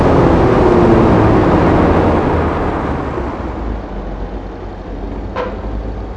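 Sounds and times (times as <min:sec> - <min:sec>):
vehicles throttling off: 0:00.0 - 0:06.1.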